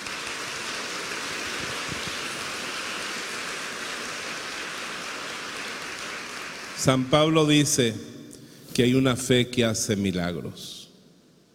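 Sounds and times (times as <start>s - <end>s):
audience applause: 0.0s - 7.1s
speech: 6.8s - 8.1s, 8.8s - 10.8s.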